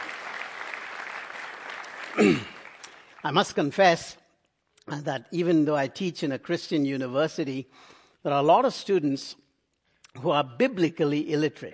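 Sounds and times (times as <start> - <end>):
audience applauding: 0.0 - 3.7
speech: 2.2 - 2.5, 3.2 - 4.2, 4.9 - 9.4, 10.1 - 11.7.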